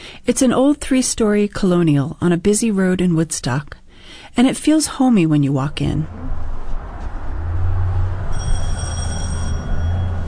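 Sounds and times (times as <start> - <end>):
speech: 0.3 - 6.4
steady low rumbling hum: 5.0 - 10.2
loud entryway door bell ringing: 8.3 - 10.2.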